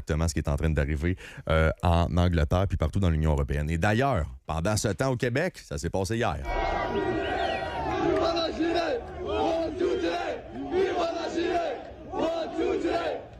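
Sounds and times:
speech: 0.1s - 9.2s
crowd chanting at a street demonstration in Montréal-Nord: 6.5s - 13.3s.

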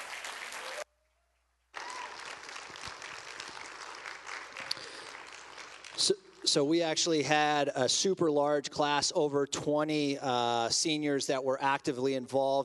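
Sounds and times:
audience applause: 0.0s - 0.8s, 1.7s - 6.1s
speech: 6.0s - 12.6s.

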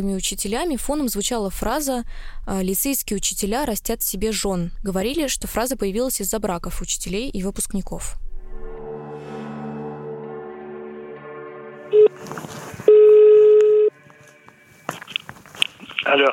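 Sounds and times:
speech: 0.0s - 8.3s, 16.1s - 16.3s
telephone dialing tones: 11.9s - 12.2s, 12.8s - 13.9s
telephone ringing tone: 11.9s - 12.2s, 12.9s - 14.0s.

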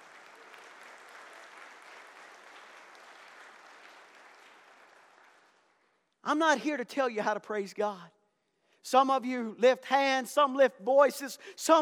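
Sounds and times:
audience clapping: 0.0s - 6.2s
speech: 6.3s - 8.2s, 8.8s - 11.8s.

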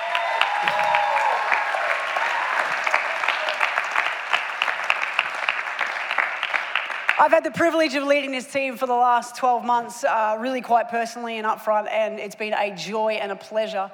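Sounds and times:
audience applause for the team: 0.0s - 7.2s
speech: 7.2s - 13.9s.

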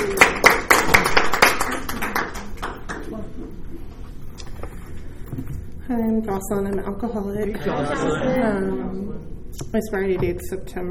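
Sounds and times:
meeting audience applause welcoming the next speaker: 0.0s - 2.8s
speech: 5.9s - 10.8s.

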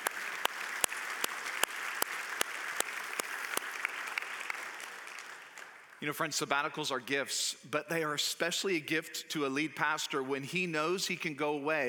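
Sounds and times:
audience applause: 0.0s - 6.0s
speech: 6.0s - 11.8s.

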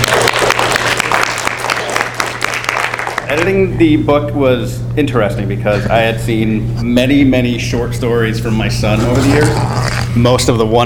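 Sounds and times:
crowd clapping in a round of applause: 0.0s - 3.4s
speech: 3.3s - 10.8s.

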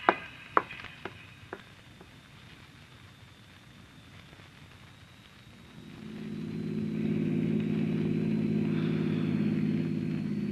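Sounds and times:
car engine rumbling as it approaches: 5.8s - 10.4s.

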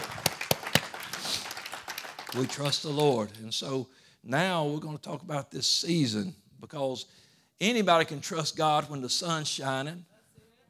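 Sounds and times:
audience clapping hands: 0.0s - 3.5s
speech: 2.3s - 10.1s.

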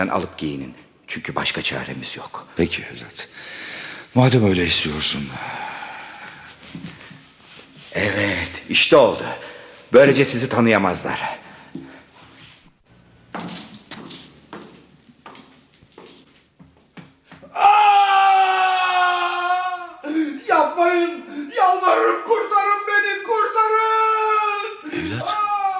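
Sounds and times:
speech: 0.0s - 3.5s, 4.1s - 5.7s, 7.9s - 11.9s
shuffling: 6.2s - 8.8s, 11.6s - 17.5s
man wailing and screaming under torture in a dungeon cell: 17.4s - 22.7s, 23.3s - 25.7s.

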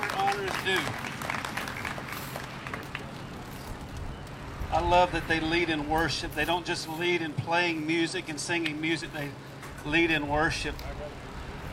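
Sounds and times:
audience clapping: 0.0s - 3.2s
speech: 0.6s - 1.1s, 4.7s - 11.2s.

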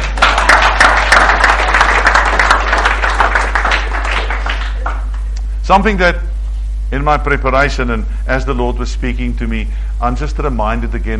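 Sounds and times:
audience applause: 0.0s - 5.3s
speech: 5.7s - 6.3s, 6.9s - 11.1s.

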